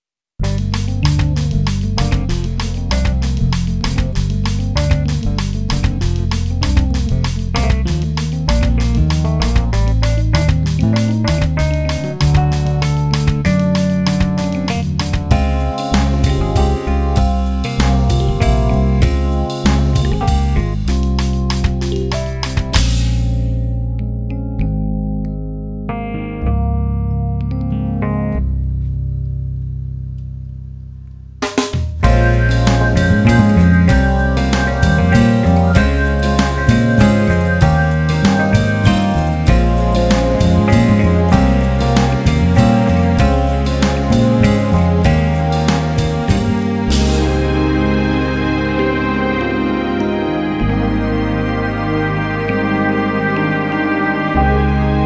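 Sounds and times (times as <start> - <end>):
funk music: 0.4 - 29.3, 31.4 - 55.0.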